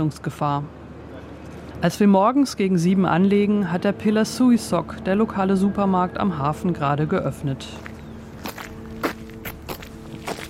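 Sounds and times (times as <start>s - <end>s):
speech: 0.0s - 0.8s, 1.8s - 7.9s
footsteps walking up a street: 7.6s - 10.4s.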